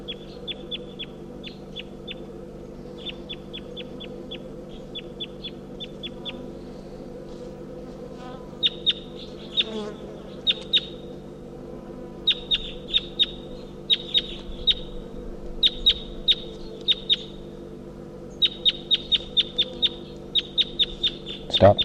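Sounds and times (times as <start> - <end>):
wild bird calls: 2.8 - 7.0, 8.2 - 11.2, 12.2 - 17.5, 18.2 - 21.8.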